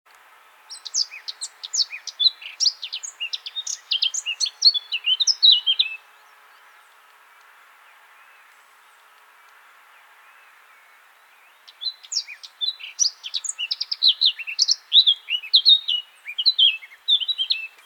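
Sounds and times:
Eurasian blackcap song: 0:00.1 - 0:17.8.

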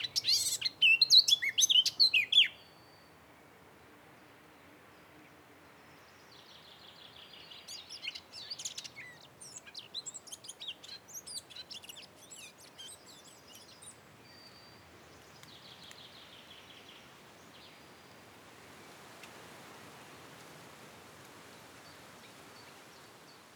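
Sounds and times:
Eurasian blackcap twittering warble: 0:00.0 - 0:02.9, 0:07.2 - 0:17.0.

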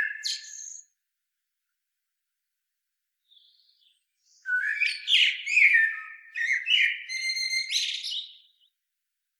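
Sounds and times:
common blackbird Turdus merula song: 0:00.0 - 0:01.0, 0:03.2 - 0:08.8.

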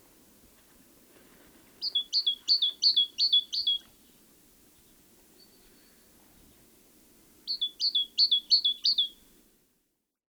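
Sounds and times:
great tit singing: 0:01.8 - 0:03.8, 0:07.5 - 0:09.2.

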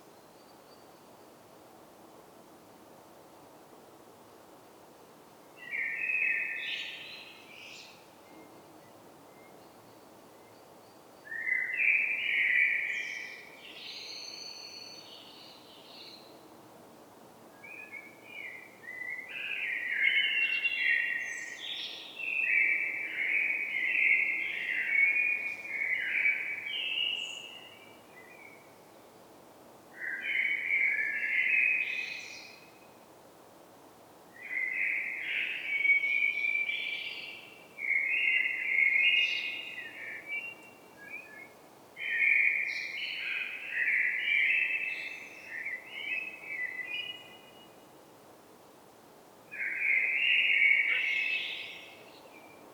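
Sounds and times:
common blackbird song: 0:05.6 - 0:16.4, 0:17.6 - 0:28.8, 0:30.0 - 0:32.8, 0:34.4 - 0:47.9, 0:49.5 - 0:52.7.

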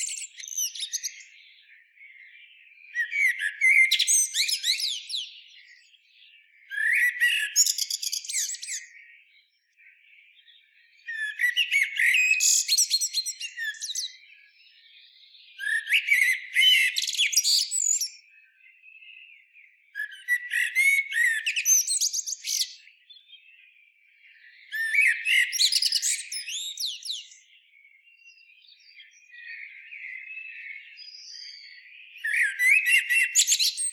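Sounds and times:
Eurasian blackbird song: 0:00.0 - 0:33.9.

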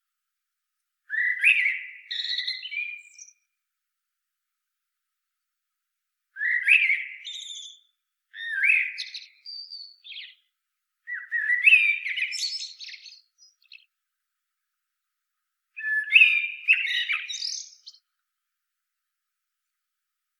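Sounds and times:
common blackbird song phrases: 0:01.1 - 0:03.4, 0:06.4 - 0:10.5, 0:11.1 - 0:13.9, 0:15.8 - 0:18.0.

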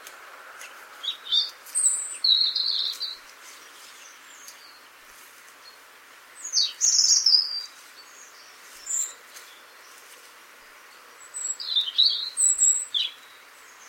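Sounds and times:
European robin singing high warble: 0:01.0 - 0:03.2, 0:06.4 - 0:10.0, 0:10.9 - 0:13.8.

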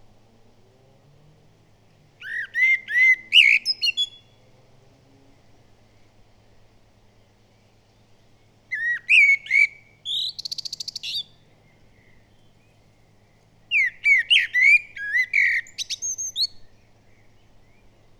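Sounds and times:
common blackbird singing: 0:02.2 - 0:04.4, 0:08.7 - 0:12.8, 0:13.7 - 0:18.1.

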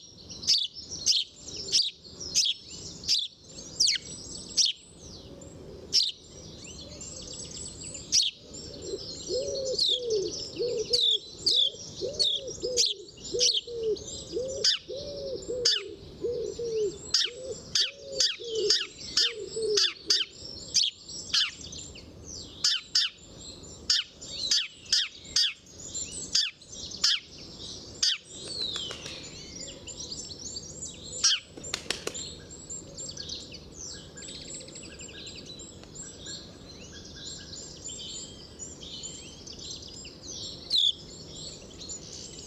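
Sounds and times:
house sparrow chirping: 0:00.0 - 0:42.4
other birds twittering: 0:00.0 - 0:42.4
doves cooing: 0:08.4 - 0:20.4.

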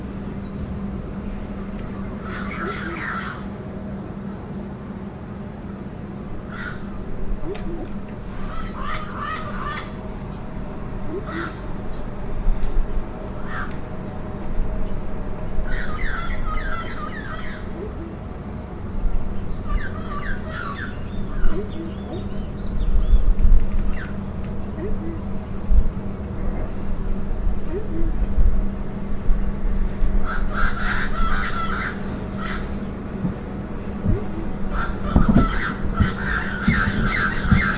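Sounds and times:
low hum: 0:00.0 - 0:37.7
bird twittering: 0:01.8 - 0:03.4, 0:06.5 - 0:12.2, 0:15.6 - 0:18.4, 0:19.1 - 0:25.4, 0:27.5 - 0:28.3, 0:30.2 - 0:37.7.

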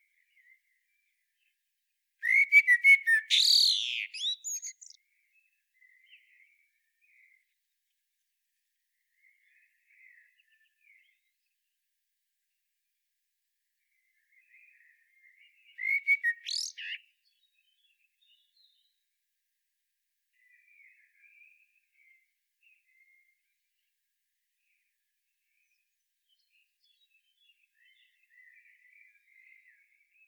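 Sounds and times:
common blackbird singing: 0:02.2 - 0:05.0, 0:15.7 - 0:18.9.

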